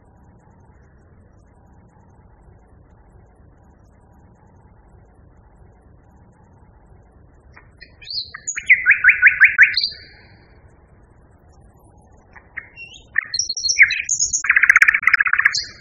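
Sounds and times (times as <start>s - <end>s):
common nightingale singing: 7.6s - 10.5s, 12.1s - 15.7s.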